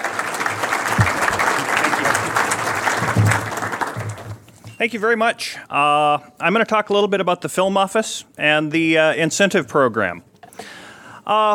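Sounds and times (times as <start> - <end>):
audience applause welcoming the Alaska Film Office manager: 0.0 - 4.5
speech: 4.8 - 11.5.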